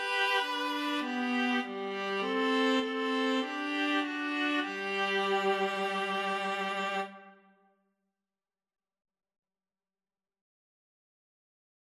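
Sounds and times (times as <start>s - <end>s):
viola duet: 0.0s - 7.4s.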